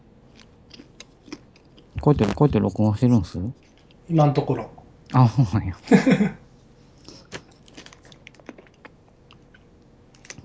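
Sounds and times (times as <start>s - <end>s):
open-mouthed chewing with wet smacking: 0.4s - 2.7s, 7.0s - 9.6s
speech: 2.0s - 6.4s.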